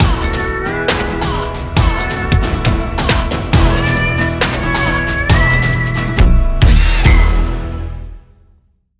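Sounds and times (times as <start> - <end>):
music: 0.0 - 8.9.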